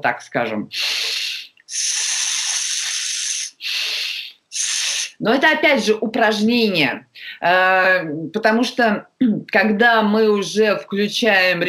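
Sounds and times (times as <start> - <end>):
speech: 0.0 - 1.1, 1.7 - 2.1, 5.2 - 11.6
sustained hissing 's' breathing exercise: 0.7 - 5.2.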